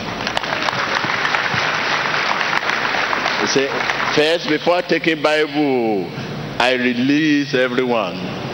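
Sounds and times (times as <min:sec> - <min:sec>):
audience clapping: 0:00.0 - 0:05.0
speech: 0:03.6 - 0:08.4.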